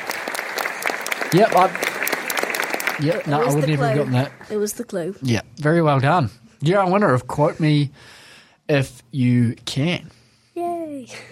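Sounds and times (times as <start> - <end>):
audience applause: 0.0 - 4.6
speech: 1.3 - 1.9, 3.0 - 10.2, 11.1 - 11.3.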